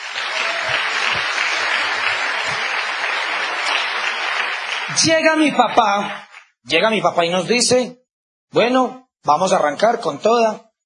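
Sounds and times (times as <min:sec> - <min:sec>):
audience applause: 0:00.0 - 0:06.4
speech: 0:05.0 - 0:10.8.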